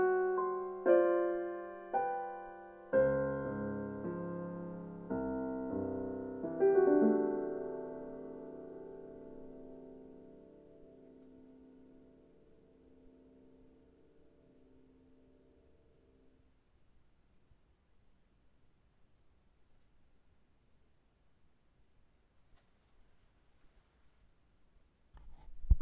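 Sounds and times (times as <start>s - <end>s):
piano piece: 0.0s - 16.4s.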